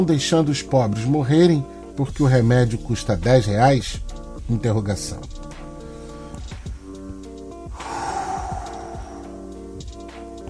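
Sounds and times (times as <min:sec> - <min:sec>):
speech: 0:00.0 - 0:05.4
steady musical backing: 0:00.0 - 0:10.4
long deep breath inhale: 0:07.7 - 0:09.9.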